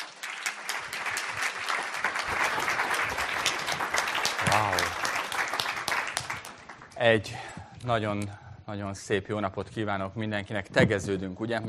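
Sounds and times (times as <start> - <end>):
audience applause: 0.0 - 7.0
speech: 7.0 - 11.6.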